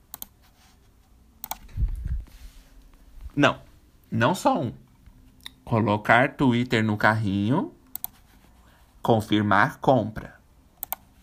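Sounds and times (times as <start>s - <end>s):
computer mouse clicking: 0.1s - 0.4s, 1.4s - 2.0s, 7.8s - 8.2s, 10.8s - 11.1s
speech: 3.4s - 4.8s, 5.7s - 7.8s, 9.0s - 10.4s.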